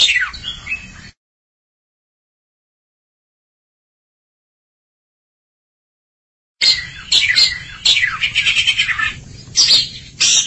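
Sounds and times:
Oriental magpie-robin giving short bright chirped notes: 0.0s - 1.2s, 6.6s - 10.4s.

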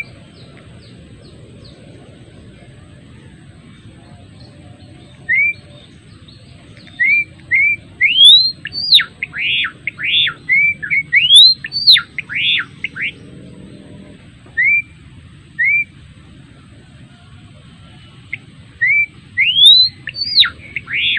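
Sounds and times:
adult male Java sparrow singing whistled notes: 0.0s - 1.9s, 3.7s - 13.8s, 14.5s - 16.0s, 18.0s - 21.1s.

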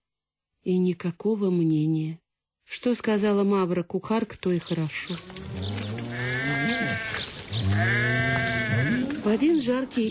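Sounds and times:
speech: 0.6s - 5.7s, 9.3s - 10.1s
town herd livestock bleating while driven along a street: 5.3s - 9.8s.

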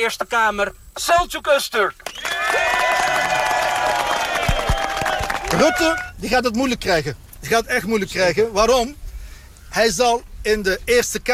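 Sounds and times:
speech: 0.0s - 4.1s, 5.6s - 9.0s, 9.7s - 11.3s
clapping: 2.0s - 6.1s
crowd cheering at a political party gathering: 2.1s - 6.1s.

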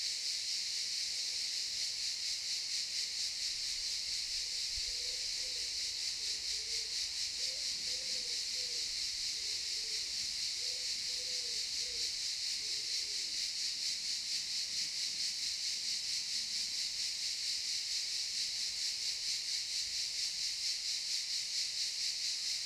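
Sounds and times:
cicadas in a pine forest at a campsite in Tuscany: 0.0s - 22.6s.

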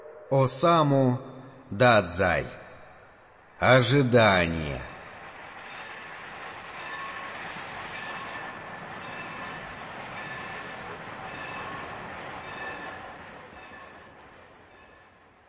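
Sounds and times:
train passing a railway station: 0.0s - 15.4s
speech: 0.3s - 2.6s, 3.6s - 4.9s
thin high metallic whines from train wheels: 5.0s - 14.2s.

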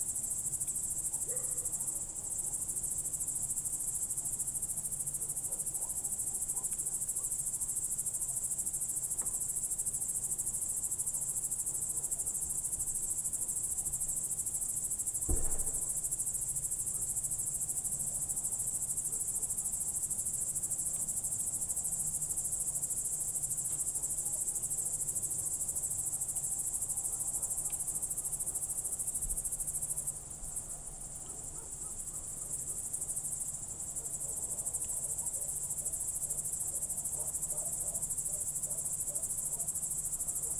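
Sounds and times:
crickets chirping chorus: 0.0s - 40.5s
soft knock: 15.3s - 16.0s.

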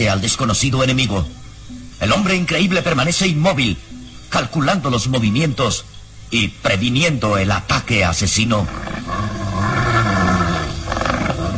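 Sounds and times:
speech: 0.0s - 9.1s
menacing growl of a wild beast: 8.6s - 11.5s.

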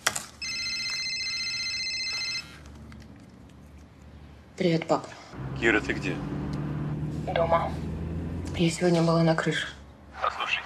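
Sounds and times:
telephone ringing: 0.4s - 2.6s
speech: 4.6s - 6.4s, 7.2s - 7.9s, 8.5s - 10.6s.

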